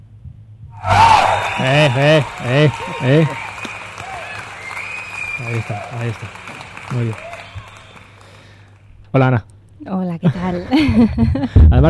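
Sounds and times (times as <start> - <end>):
crowd applauding: 0.8 - 8.8
laughter: 0.9 - 8.0, 10.2 - 11.7
speech: 1.6 - 3.4, 5.5 - 7.3, 9.2 - 11.8.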